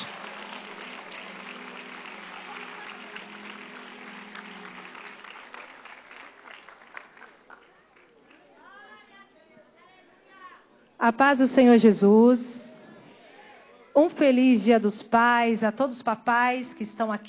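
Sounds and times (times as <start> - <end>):
audience applause: 0.0 - 9.0
speech: 11.0 - 12.7, 14.1 - 17.2.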